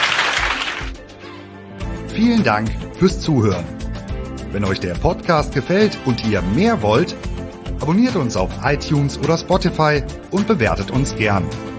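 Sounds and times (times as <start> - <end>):
audience applause: 0.0 - 1.0
speech: 2.2 - 3.8, 4.5 - 11.7.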